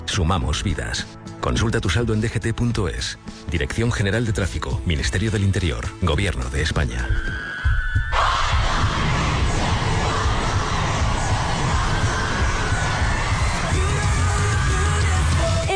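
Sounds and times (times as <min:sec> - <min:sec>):
speech: 0:00.2 - 0:07.5
huge crowd of fans screaming and cheering: 0:07.1 - 0:15.7.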